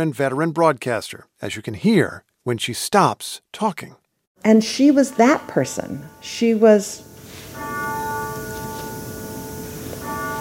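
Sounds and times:
speech: 0.0 - 7.8
grandfather clock chiming: 4.5 - 10.3.

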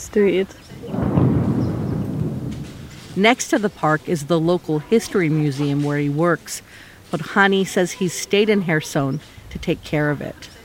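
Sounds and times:
speech: 0.1 - 1.1, 3.2 - 10.5
distant explosions in Kherson: 0.8 - 4.0.

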